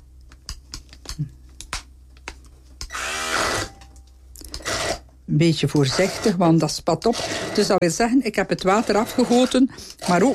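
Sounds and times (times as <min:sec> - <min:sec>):
hand blender whirring through chickpeas: 0:02.9 - 0:03.8, 0:04.5 - 0:05.1, 0:05.8 - 0:06.4, 0:07.0 - 0:07.8, 0:08.6 - 0:10.3
speech: 0:05.3 - 0:10.3.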